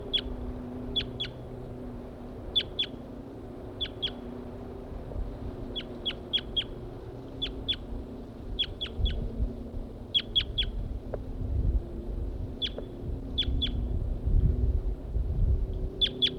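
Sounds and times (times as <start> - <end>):
wild birds chirping: 0.0 - 0.3, 0.9 - 1.4, 2.5 - 3.0, 3.8 - 4.3, 5.6 - 7.9, 10.1 - 10.8, 12.6 - 13.9, 16.0 - 16.3
low rumbling wind-like noise: 0.0 - 16.3.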